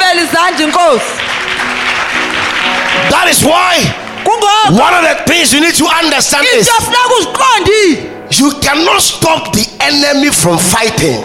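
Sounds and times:
audience clapping: 0.0s - 5.6s
speech: 0.3s - 1.4s, 3.0s - 11.2s.

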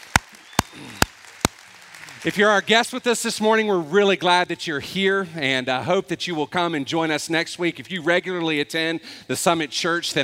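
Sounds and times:
sharp claps: 0.0s - 2.7s
speech: 2.2s - 10.2s.

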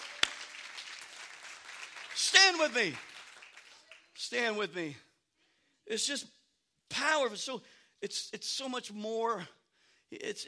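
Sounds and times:
audience hand clapping: 0.0s - 4.3s
speech: 2.4s - 3.1s, 4.2s - 5.1s, 5.9s - 6.4s, 7.0s - 10.4s.

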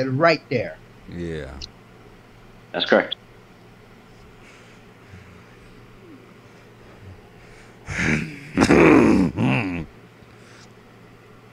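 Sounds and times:
speech: 0.0s - 1.7s, 2.7s - 3.2s
man clearing his throat: 7.9s - 9.9s.

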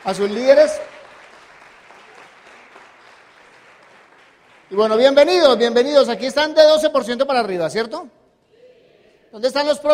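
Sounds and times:
speech: 0.0s - 1.0s, 4.7s - 8.2s, 9.3s - 9.9s
audience applause: 0.0s - 4.9s.

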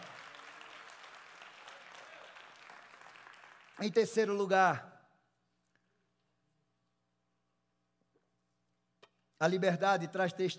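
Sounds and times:
faint audience applause: 0.0s - 4.3s
speech: 3.8s - 4.9s, 9.4s - 10.5s.

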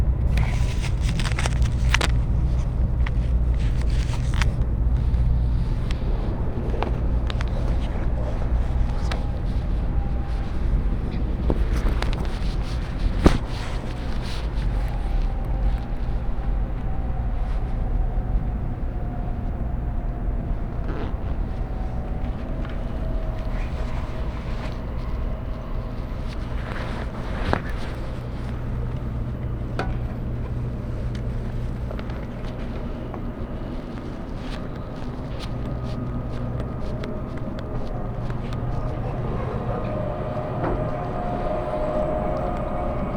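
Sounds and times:
Tokaido Shinkansen Kodama train running from Hamamatsu toward Shizuoka: 0.0s - 43.1s
faint tones: 2.2s - 43.1s.

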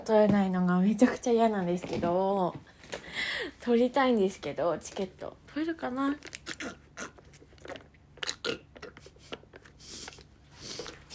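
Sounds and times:
speech: 0.0s - 6.8s
wet squishy chewing of tapioca pearls: 6.2s - 11.0s.

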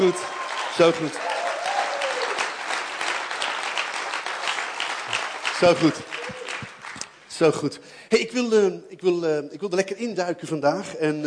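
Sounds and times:
speech: 0.0s - 1.3s, 5.6s - 6.4s, 7.4s - 11.2s
audience applause: 0.0s - 7.0s.

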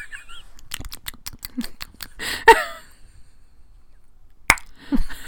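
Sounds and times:
soft mouth and breath noises: 0.4s - 2.5s
wet mouth clicks in ASMR style: 0.5s - 2.2s, 4.5s - 4.8s.

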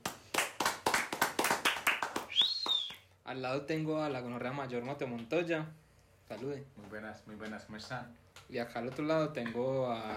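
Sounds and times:
applause: 0.0s - 3.1s
speech: 3.3s - 10.1s.

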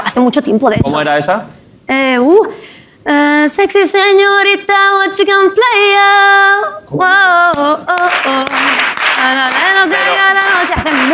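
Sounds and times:
speech: 0.2s - 11.1s
audience applause: 8.0s - 11.1s.

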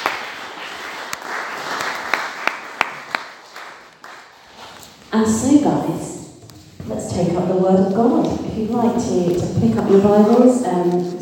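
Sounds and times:
audience round of applause: 0.0s - 4.6s
speech: 5.1s - 6.2s, 7.1s - 11.2s.

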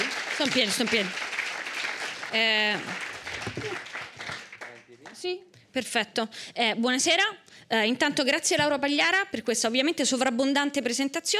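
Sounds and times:
audience applause: 0.0s - 5.2s
speech: 0.4s - 1.3s, 2.3s - 3.9s, 5.2s - 11.3s.

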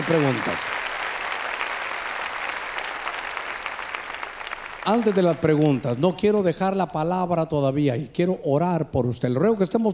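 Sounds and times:
audience clapping loudly: 0.0s - 6.8s
speech: 0.1s - 0.8s, 4.8s - 9.9s.

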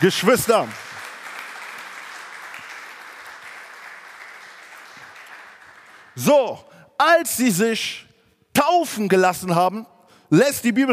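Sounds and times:
speech: 0.0s - 0.9s, 6.2s - 10.9s
audience applause: 0.0s - 6.3s.

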